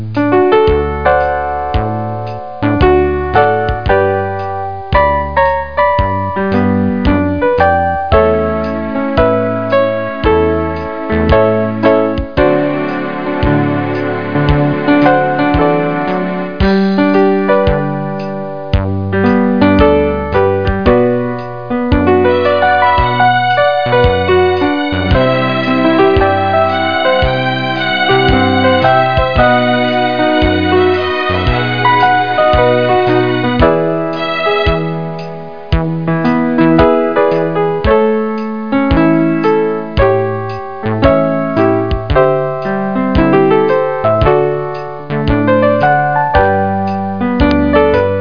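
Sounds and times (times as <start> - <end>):
waltz music: 0.2 - 48.1.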